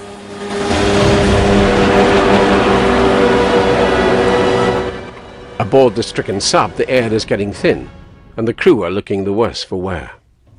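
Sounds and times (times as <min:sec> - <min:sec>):
inflatable dinghies' outboard motors roaring: 0:00.0 - 0:05.3
speech: 0:05.7 - 0:10.2.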